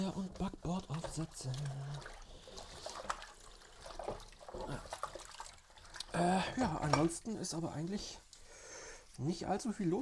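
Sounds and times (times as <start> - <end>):
running water splashing while pans are rinsed: 0.0 - 10.0
speech: 0.1 - 2.2, 6.2 - 8.2, 9.2 - 10.0
pans clinking: 6.7 - 7.3.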